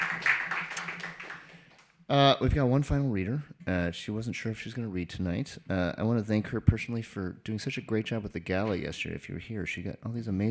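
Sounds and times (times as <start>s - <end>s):
audience applause: 0.0s - 1.8s
speech: 2.1s - 10.4s.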